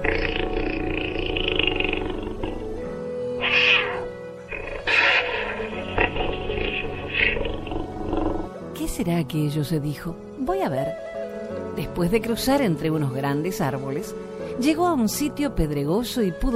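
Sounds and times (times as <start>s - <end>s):
jaguar snoring: 0.0s - 8.7s
speech: 9.0s - 11.0s, 11.8s - 16.5s.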